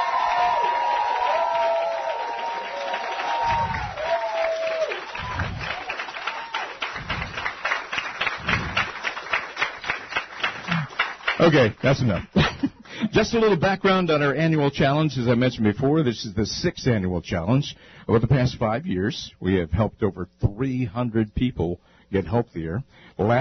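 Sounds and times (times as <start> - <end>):
audience applause: 0.0 - 13.7
speech: 11.5 - 12.4, 13.1 - 23.4.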